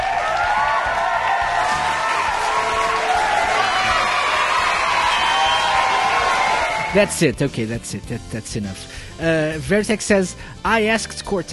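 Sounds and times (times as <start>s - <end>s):
applause and cheering: 0.0s - 7.2s
speech: 6.9s - 11.5s.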